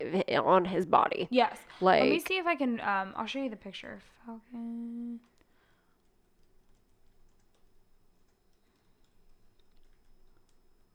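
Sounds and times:
speech: 0:00.1 - 0:05.3
typing on a computer keyboard: 0:06.0 - 0:10.9.

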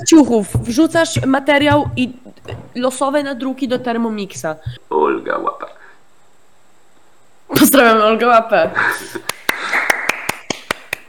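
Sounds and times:
speech: 0:00.0 - 0:05.7, 0:07.5 - 0:09.3
hand clapping applause: 0:09.2 - 0:11.0.

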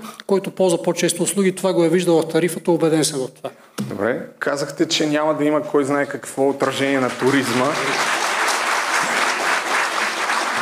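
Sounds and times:
speech: 0:00.3 - 0:08.2
emphatic audience applause: 0:06.8 - 0:10.5.

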